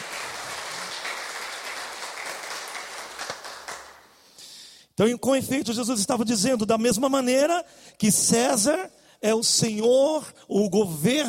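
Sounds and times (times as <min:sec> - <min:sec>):
audience applause: 0:00.0 - 0:04.1
speech: 0:05.0 - 0:11.2.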